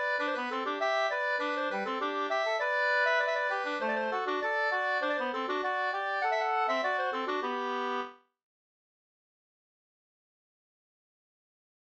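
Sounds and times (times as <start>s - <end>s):
folk walking tune: 0.0s - 8.2s.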